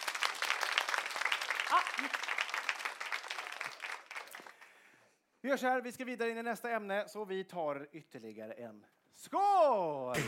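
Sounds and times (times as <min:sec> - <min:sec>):
audience applause: 0:00.0 - 0:04.8
speech: 0:01.7 - 0:02.4, 0:05.4 - 0:10.2.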